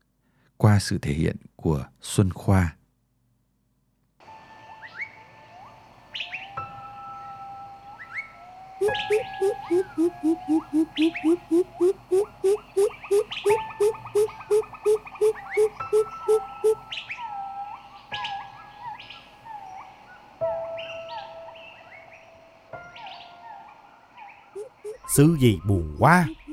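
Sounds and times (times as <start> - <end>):
speech: 0.6 - 2.8, 8.9 - 16.8, 25.2 - 26.4
greater coucal calling: 8.8 - 17.0, 24.6 - 26.5.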